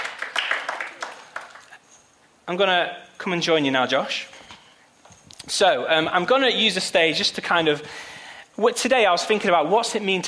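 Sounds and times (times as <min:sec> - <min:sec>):
audience clapping: 0:00.0 - 0:01.8
speech: 0:02.5 - 0:04.4, 0:05.5 - 0:10.2.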